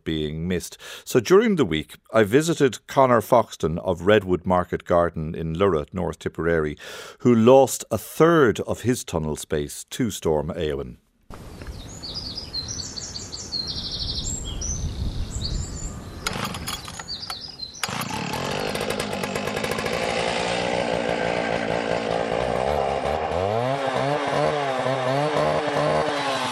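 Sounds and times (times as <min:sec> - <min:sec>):
speech: 0:00.0 - 0:11.4
spring birdsong: 0:11.3 - 0:19.8
chainsaw cutting: 0:16.2 - 0:26.4.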